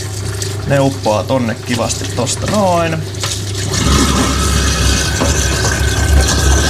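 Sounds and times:
food waste grinder running: 0.0 - 6.6
speech: 0.7 - 3.3
watery hiss: 3.6 - 6.6.

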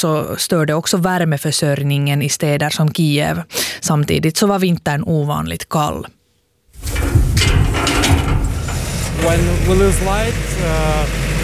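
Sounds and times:
speech: 0.0 - 6.2, 9.2 - 11.2
large backup generator starting in the courtyard of a Kyiv high-rise: 6.8 - 11.4.

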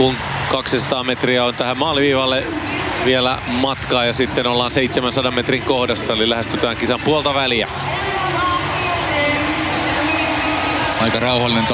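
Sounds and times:
speech: 0.0 - 8.1, 11.0 - 11.7
stadium crowd cheering for a runner: 0.0 - 11.7.

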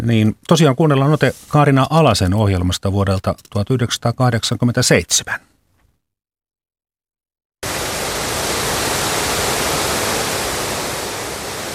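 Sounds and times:
speech: 0.0 - 5.5
rushing river rapids: 7.6 - 11.7.

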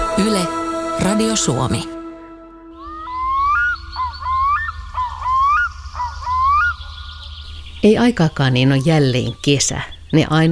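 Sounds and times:
speech: 0.2 - 2.0, 7.8 - 10.5
black-throated loon calling on a calm lake: 2.7 - 10.5.

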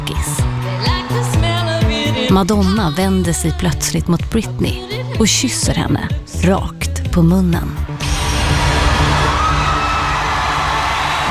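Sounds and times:
large audience cheering and whooping: 0.2 - 2.1, 8.0 - 11.2
speech: 2.3 - 7.9.

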